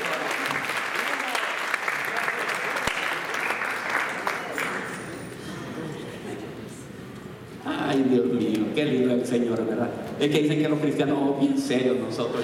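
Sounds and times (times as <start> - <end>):
audience applauding: 0.0 - 5.2
speech: 8.0 - 12.4.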